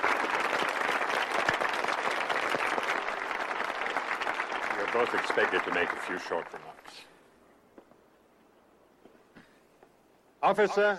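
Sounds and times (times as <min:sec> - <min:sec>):
slow clapping: 0:00.0 - 0:06.6
speech: 0:05.0 - 0:07.1, 0:10.4 - 0:10.9.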